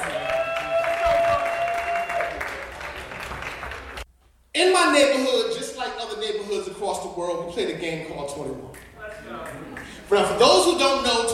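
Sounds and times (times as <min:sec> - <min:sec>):
audience clapping: 0:00.0 - 0:04.1, 0:08.7 - 0:10.5
speech: 0:04.6 - 0:11.3.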